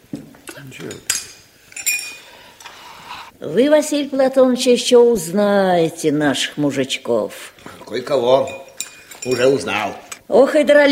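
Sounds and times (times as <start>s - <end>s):
cups and spoons clinking: 0.5s - 2.7s, 7.6s - 10.2s
speech: 0.6s - 1.2s, 3.4s - 8.6s, 9.2s - 10.9s
dishes clattering: 0.7s - 2.7s, 7.6s - 10.2s
tea pouring: 7.6s - 10.2s.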